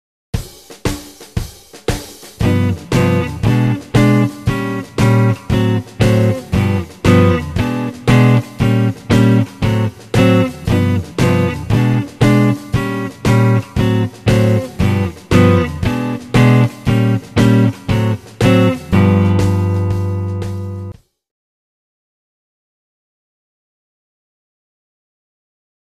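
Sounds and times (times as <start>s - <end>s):
rhythm guitar: 0.4s - 21.0s.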